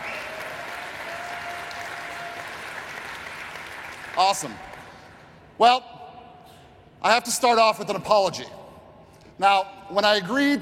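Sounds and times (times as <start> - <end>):
audience applause: 0.0 - 4.9
speech: 4.2 - 4.7, 5.6 - 5.9, 7.0 - 8.6, 9.4 - 10.6.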